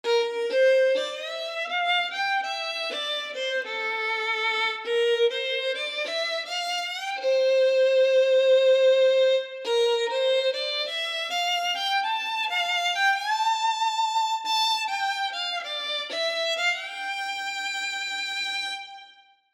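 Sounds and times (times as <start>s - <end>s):
violin: 0.0s - 19.5s.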